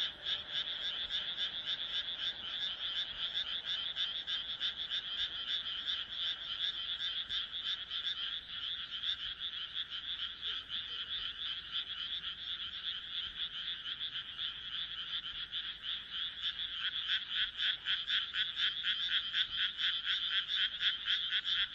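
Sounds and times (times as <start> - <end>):
frogs croaking in chorus: 0.0 - 21.7.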